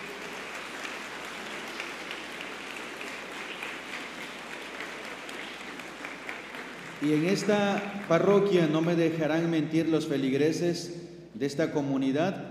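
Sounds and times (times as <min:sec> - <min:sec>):
applause for the priests: 0:00.0 - 0:09.0
speech: 0:07.0 - 0:12.5.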